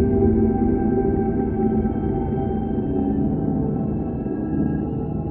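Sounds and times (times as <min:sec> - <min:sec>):
relaxation music: 0:00.0 - 0:05.2.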